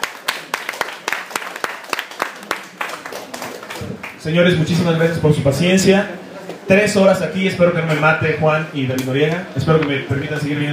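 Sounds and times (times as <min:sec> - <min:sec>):
audience applause: 0:00.0 - 0:04.2
speech: 0:04.2 - 0:10.7.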